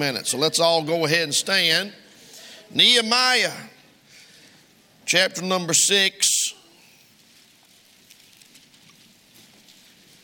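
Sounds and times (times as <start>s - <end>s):
speech: 0.0s - 2.0s, 2.7s - 3.8s, 5.1s - 6.3s
rustling of Bible pages: 7.1s - 10.2s.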